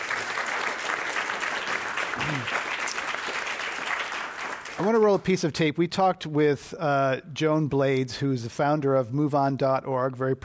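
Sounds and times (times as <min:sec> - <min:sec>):
audience applause: 0:00.0 - 0:05.3
speech: 0:02.2 - 0:02.7, 0:04.8 - 0:10.4.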